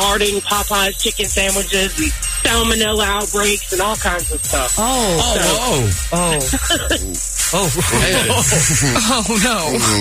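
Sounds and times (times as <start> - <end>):
speech: 0.2 - 10.0
people laughing: 5.0 - 10.0.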